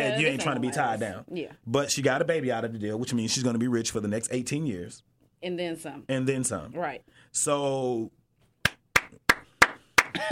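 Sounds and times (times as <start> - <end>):
speech: 0.1 - 8.2
hands clapping for a round of applause: 8.6 - 10.2.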